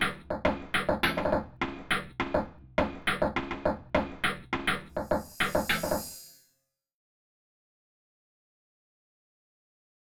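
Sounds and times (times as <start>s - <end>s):
percussion: 0.0s - 6.5s.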